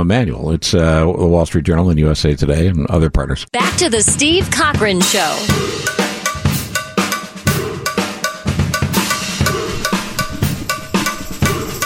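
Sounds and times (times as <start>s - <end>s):
speech: 0.0s - 6.0s
loud driving percussion music: 3.6s - 11.8s
bright metallic cowbell clanking: 5.6s - 11.8s.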